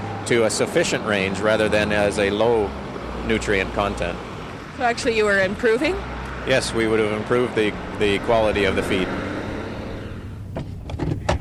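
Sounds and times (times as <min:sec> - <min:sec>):
car driving up a road on a pulp mill company's property: 0:00.0 - 0:11.3
speech: 0:00.3 - 0:09.2.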